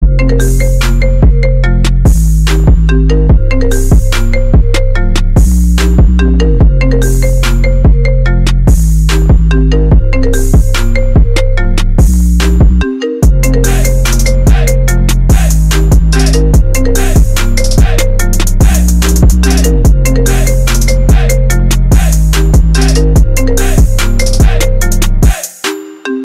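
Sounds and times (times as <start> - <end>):
ringtone trap remix: 0.0 - 25.8.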